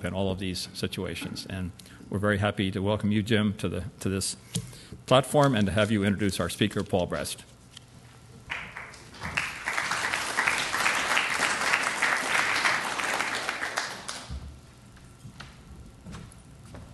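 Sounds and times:
speech: 0.0s - 7.5s
audience applause: 8.5s - 14.3s.

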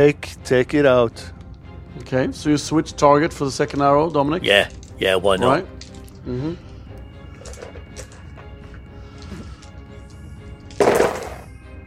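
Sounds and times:
speech: 0.0s - 1.4s, 2.0s - 6.7s
handful of dice clattering across a hard surface: 4.5s - 6.2s, 7.3s - 9.8s, 10.6s - 11.4s.

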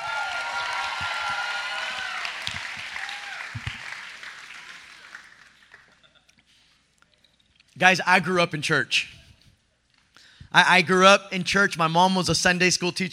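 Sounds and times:
crowd cheering with whoops and shouts: 0.0s - 5.8s
dense applause: 0.0s - 6.1s
speech: 7.8s - 9.2s, 10.5s - 13.1s.

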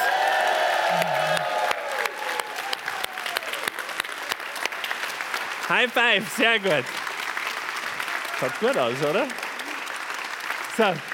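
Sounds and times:
whoops and cheers: 0.0s - 4.0s
audience clapping: 0.0s - 11.1s
speech: 5.7s - 7.0s, 8.4s - 9.4s, 10.8s - 11.1s.

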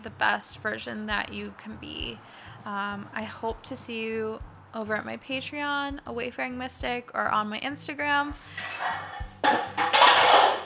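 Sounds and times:
speech: 0.0s - 9.8s
muffin tin knocked off a counter: 8.6s - 10.6s.

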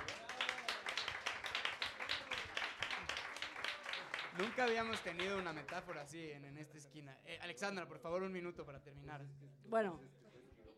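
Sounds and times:
audience applause: 0.0s - 5.9s
speech: 4.4s - 10.3s.

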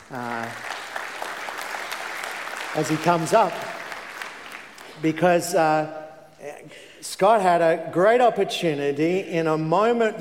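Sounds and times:
audience applause welcoming a speaker to the stage: 0.0s - 5.2s
speech: 0.1s - 0.7s, 2.8s - 3.7s, 5.0s - 10.1s.

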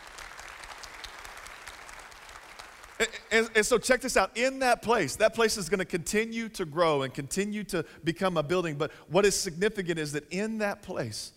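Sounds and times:
audience clapping: 0.0s - 3.6s
speech: 3.0s - 11.3s.

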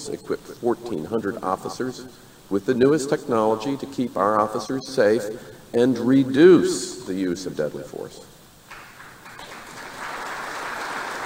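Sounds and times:
speech: 0.0s - 8.3s
golf clap: 8.7s - 11.2s.

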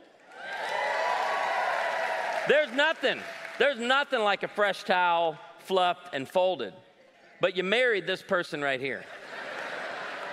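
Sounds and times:
crowd cheering and applauding with whoops: 0.1s - 3.9s
speech: 2.4s - 6.8s, 7.4s - 9.2s
laughter: 9.0s - 10.3s.

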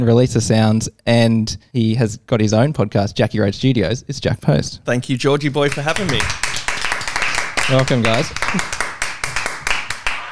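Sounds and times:
speech: 0.0s - 6.6s, 7.7s - 8.8s
sharp hand claps in the studio: 5.7s - 10.3s.

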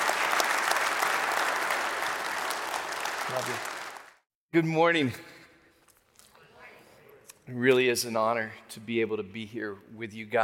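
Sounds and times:
audience applause welcoming a speaker to the stage: 0.0s - 4.2s
speech: 3.3s - 3.7s, 4.5s - 5.3s, 7.5s - 10.4s.

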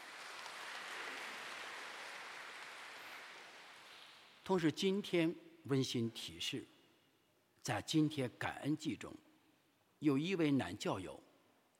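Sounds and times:
audience applauding: 0.0s - 4.4s
speech: 4.5s - 6.8s, 7.7s - 9.3s, 10.0s - 11.3s.

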